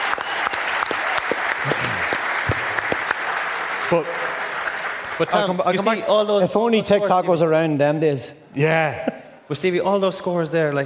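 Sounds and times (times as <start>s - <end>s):
crowd round of applause: 0.0s - 6.0s
speech: 3.9s - 4.3s, 5.2s - 10.8s.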